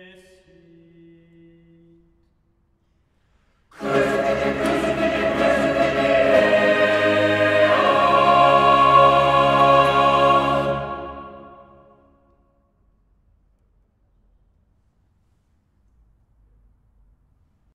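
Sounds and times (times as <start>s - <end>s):
choir singing: 3.8s - 12.2s.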